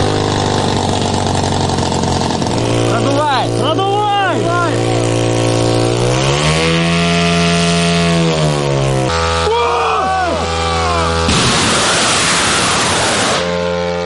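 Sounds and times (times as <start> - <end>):
small drone propeller engines revving up and taking off: 0.0 - 14.0.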